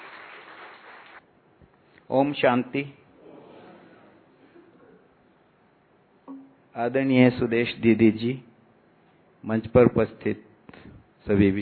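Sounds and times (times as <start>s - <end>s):
audience applause: 0.0s - 1.2s
speech: 2.1s - 3.0s, 6.8s - 8.5s, 9.4s - 11.6s.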